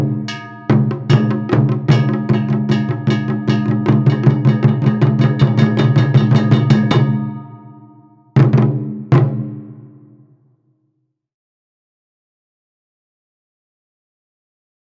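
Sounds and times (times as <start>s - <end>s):
taiko drums: 0.0s - 10.2s.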